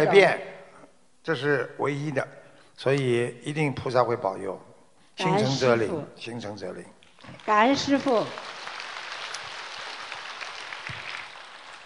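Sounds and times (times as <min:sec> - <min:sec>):
speech: 0:00.0 - 0:00.5, 0:01.2 - 0:08.6
audience applause: 0:07.2 - 0:11.8.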